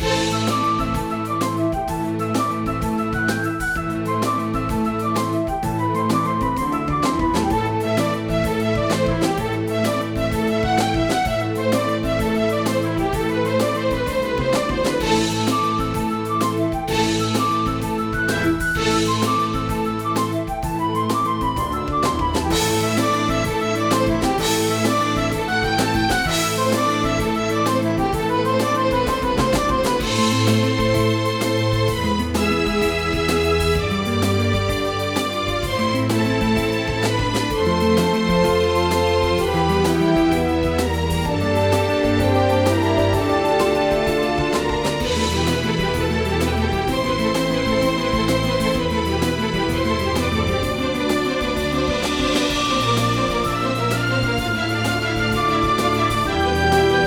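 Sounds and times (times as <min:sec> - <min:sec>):
forest combat music loop: 0:00.0 - 0:57.0.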